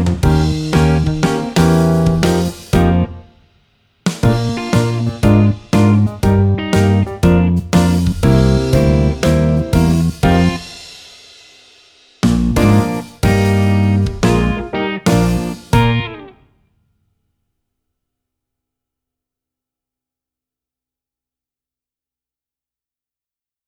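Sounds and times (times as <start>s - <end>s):
jazz backing track: 0.0s - 3.3s, 4.1s - 11.1s, 12.2s - 16.3s.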